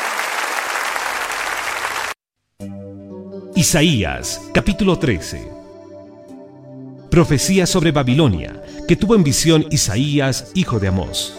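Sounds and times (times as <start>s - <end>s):
large crowd applauding: 0.0s - 2.2s
sustained musical chord: 2.6s - 11.3s
speech: 3.6s - 5.6s, 7.2s - 11.3s.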